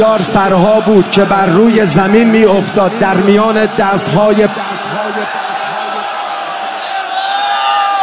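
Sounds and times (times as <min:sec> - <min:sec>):
speech: 0:00.0 - 0:05.4
mourning congregation shouting at a preacher's call: 0:03.0 - 0:08.0.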